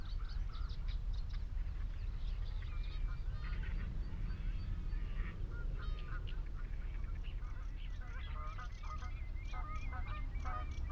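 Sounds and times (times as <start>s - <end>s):
birds chattering and chirping on Higham Marshes: 0.0s - 10.9s
wind rumble on Higham Marshes in Kent: 0.0s - 10.9s
geese honking on Higham Marshes: 2.6s - 10.9s.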